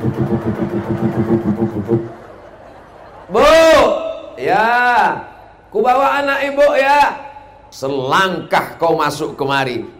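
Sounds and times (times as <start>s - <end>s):
motorcycle with modified cut-down exhaust revving: 0.0s - 2.1s
laughter: 0.4s - 3.4s
speech: 4.6s - 9.9s.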